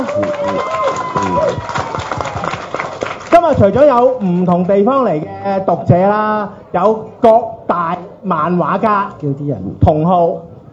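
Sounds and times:
audience applause: 0.0 - 3.3
speech: 0.2 - 1.9, 3.4 - 10.5.

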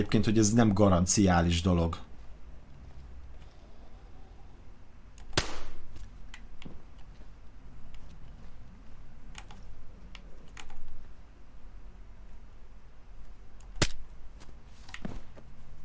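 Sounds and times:
speech: 0.0 - 2.1
gunshot fired at zombies in a video game: 5.3 - 5.8.

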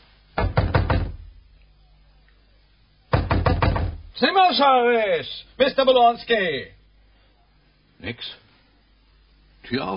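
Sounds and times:
knocking on a door: 0.4 - 1.3, 3.1 - 4.1
speech: 4.2 - 6.8, 8.0 - 8.4, 9.7 - 9.9.

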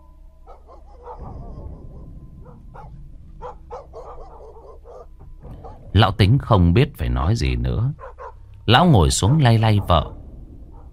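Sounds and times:
steady low rumbling background: 0.0 - 10.9
dogs barking in the distance in a village: 0.4 - 6.0, 7.8 - 10.9
speech: 6.0 - 8.1, 8.7 - 10.2.

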